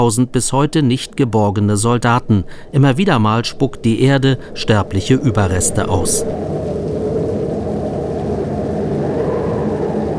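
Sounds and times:
speech: 0.0 - 6.6
cold wind: 0.0 - 10.1
rain mixed with snow: 2.2 - 10.1.

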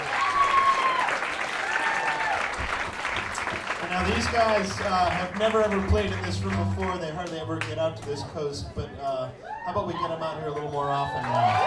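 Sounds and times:
cheers: 0.0 - 5.2, 9.4 - 11.6
audience applause: 0.0 - 8.1, 10.5 - 11.6
speech: 4.0 - 11.6.

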